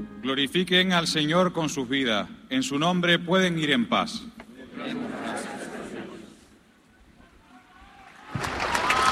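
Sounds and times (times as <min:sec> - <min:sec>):
speech: 0:00.3 - 0:05.3
crowd voices: 0:04.5 - 0:08.0
audience applauding: 0:08.0 - 0:09.0.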